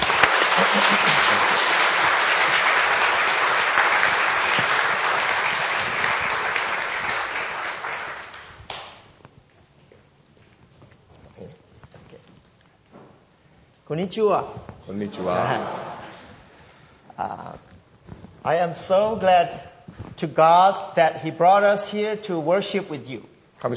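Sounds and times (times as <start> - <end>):
audience applause welcoming speaker: 0.0 - 9.0
laughter: 0.1 - 2.6, 15.0 - 16.3
speech: 0.6 - 1.5, 13.9 - 15.8, 18.4 - 23.7.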